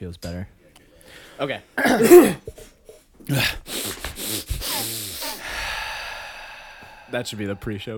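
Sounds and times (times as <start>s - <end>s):
speech: 0.0s - 5.2s, 7.1s - 7.9s
gasps and exhalations blown into a microphone: 0.9s - 1.4s, 3.4s - 7.9s.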